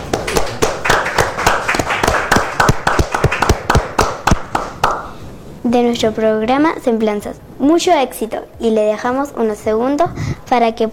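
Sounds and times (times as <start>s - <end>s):
small group hand clapping: 0.0s - 5.2s
speech: 5.7s - 10.9s.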